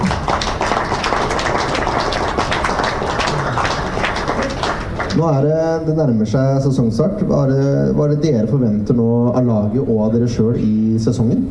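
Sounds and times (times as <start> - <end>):
applause, hands clapping: 0.0 - 5.3
speech: 5.2 - 11.4.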